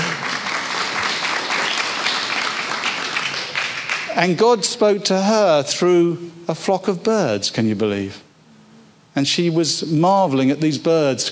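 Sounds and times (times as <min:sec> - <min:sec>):
audience applause: 0:00.0 - 0:04.3
speech: 0:04.2 - 0:08.2, 0:09.2 - 0:11.3.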